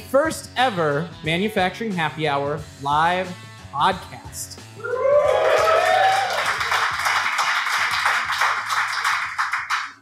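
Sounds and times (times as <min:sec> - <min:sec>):
speech: 0:00.1 - 0:05.4
audience cheers: 0:04.8 - 0:07.1
audience clapping: 0:04.9 - 0:09.9.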